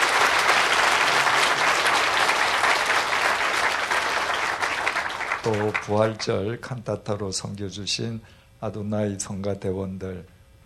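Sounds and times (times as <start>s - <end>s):
audience applauding: 0.0s - 6.3s
speech: 5.4s - 10.6s.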